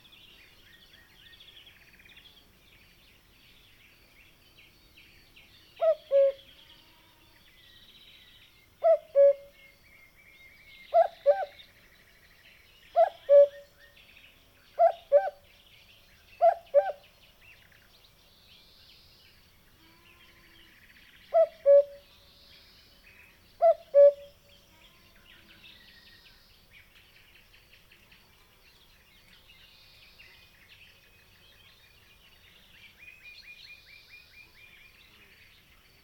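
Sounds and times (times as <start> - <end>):
faint bird chirps: 0.0 - 36.0
cuckoo calling: 5.8 - 6.5, 8.8 - 9.6, 10.9 - 11.6, 13.0 - 13.7, 14.8 - 15.4, 16.4 - 17.0, 21.3 - 22.1, 23.6 - 24.4.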